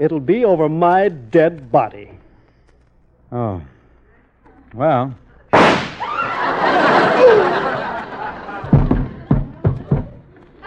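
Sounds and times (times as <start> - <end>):
speech: 0.0 - 2.1, 3.3 - 3.7, 4.7 - 5.2
gunshot in a radio comedy: 5.5 - 6.3
audience laughter: 6.2 - 10.6.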